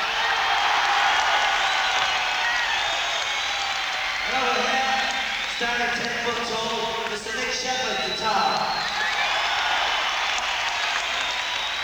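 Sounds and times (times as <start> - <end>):
concert crowd applauding and cheering to welcome the guitarist: 0.0 - 11.8
speech: 5.6 - 9.0.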